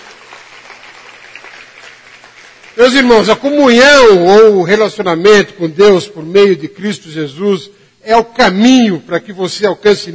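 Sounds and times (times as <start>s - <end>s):
church congregation applause: 0.0s - 4.2s
speech: 2.8s - 10.1s.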